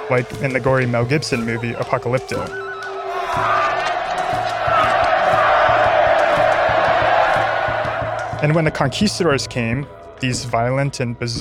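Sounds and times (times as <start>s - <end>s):
rhythmic low thumps: 0.0s - 11.3s
speech: 0.1s - 2.6s, 3.3s - 3.9s, 8.4s - 11.3s
large crowd roaring and cheering wildly: 2.6s - 9.1s.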